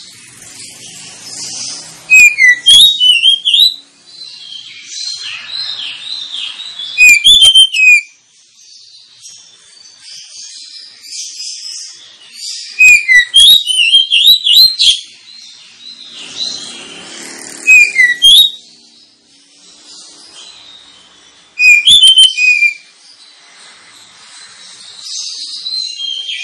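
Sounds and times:
Oriental magpie-robin whistled song: 0.0 - 17.0, 17.6 - 26.4.

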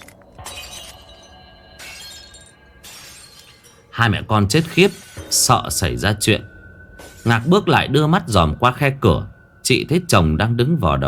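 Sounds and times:
glass breaking: 0.0 - 5.6
household belongings crashing and shattering: 0.0 - 5.6
tinkling debris: 0.0 - 8.8
speech: 4.0 - 6.5, 7.2 - 11.0.

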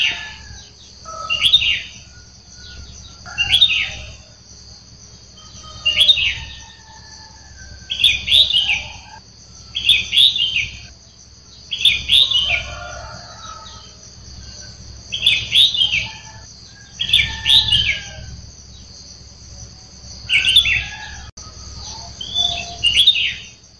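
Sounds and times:
sooty-headed bulbul song: 0.0 - 23.7.

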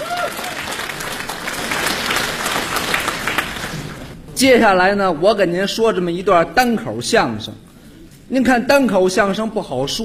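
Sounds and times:
audience applause at a live comic crosstalk show: 0.0 - 4.2
speech: 4.4 - 7.7, 8.3 - 10.0.

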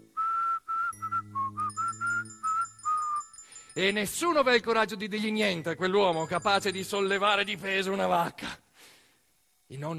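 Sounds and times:
very large grandfather whistling a short tune: 0.0 - 3.8
speech: 3.8 - 8.6, 9.7 - 9.9.

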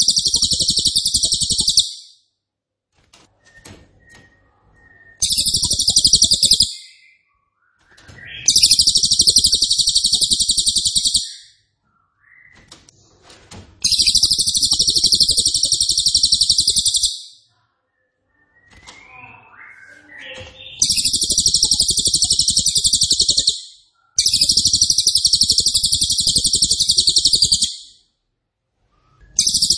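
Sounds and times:
Cililin high trills: 0.0 - 2.1, 5.2 - 6.9, 8.3 - 11.5, 13.8 - 17.4, 20.5 - 28.0, 29.4 - 29.7
soft chirps: 0.0 - 2.2, 4.1 - 12.7, 13.8 - 28.1, 28.8 - 29.7.

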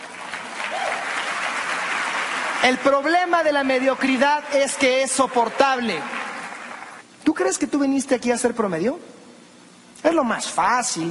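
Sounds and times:
audience applause during a motivational talk: 0.0 - 7.0
speech: 2.6 - 6.2, 7.3 - 9.1, 10.0 - 11.0.

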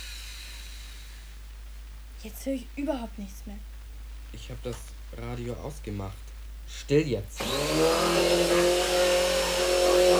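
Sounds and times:
drilling: 0.0 - 1.2, 7.4 - 10.1
speech: 2.2 - 3.7, 4.3 - 8.9.

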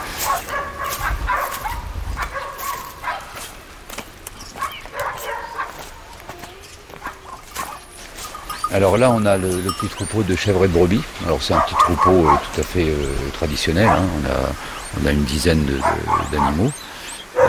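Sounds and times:
dog barking: 0.2 - 3.5, 4.6 - 6.1, 6.9 - 8.3, 11.4 - 12.6, 13.8 - 14.2, 15.6 - 17.4
speech: 8.7 - 16.8.

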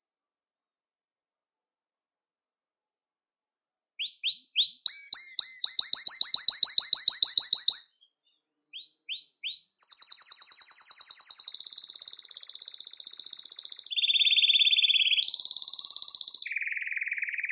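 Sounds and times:
Belgian canary giving short sharp high chirps: 4.0 - 17.4.

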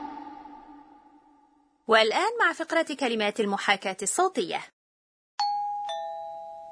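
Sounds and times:
speech: 1.9 - 4.7
doorbell chime: 5.4 - 6.7.

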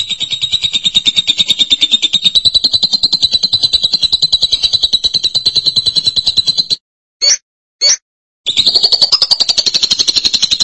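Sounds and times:
lovebird chattering: 0.0 - 10.6
lovebird sharp squeaks: 2.3 - 8.0.

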